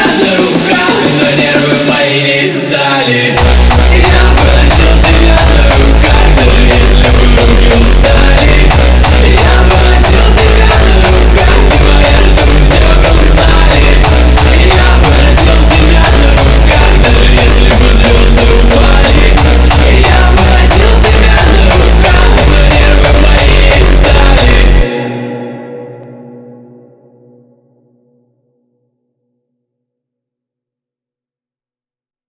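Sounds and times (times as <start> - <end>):
hardstyle remix: 0.0 - 25.7.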